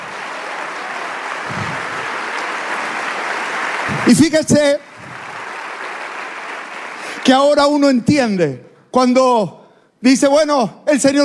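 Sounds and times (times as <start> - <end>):
audience applause: 0.0 - 7.6
speech: 4.1 - 4.9, 7.3 - 11.2.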